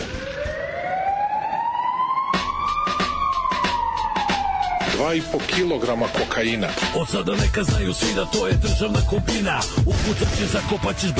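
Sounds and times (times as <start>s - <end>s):
loud wailing alarm siren: 0.0s - 6.4s
speech: 5.0s - 11.1s.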